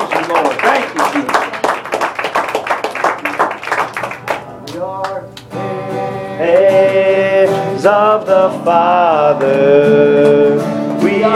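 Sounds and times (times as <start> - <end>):
people clapping hands in praise: 0.0 - 5.6, 6.4 - 7.2, 9.3 - 10.5
speech: 7.8 - 11.3.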